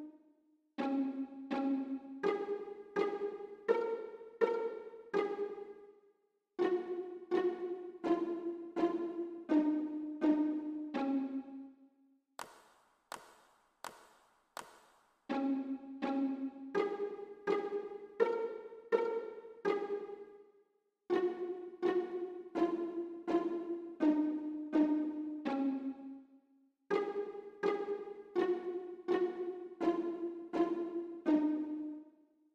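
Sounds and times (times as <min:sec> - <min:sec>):
violin and viola pizzicato: 0:00.8 - 0:05.9, 0:06.6 - 0:11.8, 0:15.3 - 0:20.4, 0:21.1 - 0:26.3, 0:26.9 - 0:32.2.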